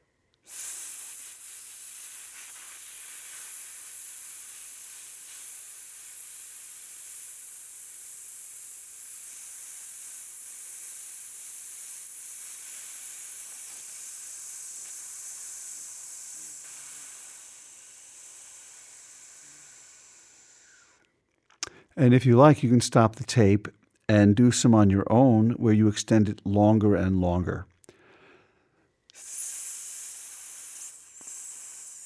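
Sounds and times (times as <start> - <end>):
person breathing out in a sustained hiss: 0.4 - 22.0, 27.9 - 32.0
speech: 22.0 - 27.7.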